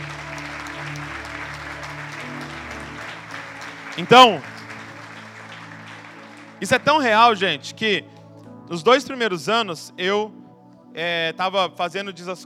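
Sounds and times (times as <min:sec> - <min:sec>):
audience applause: 0:00.0 - 0:07.4
speech: 0:04.0 - 0:04.5, 0:06.6 - 0:08.1, 0:08.7 - 0:12.4.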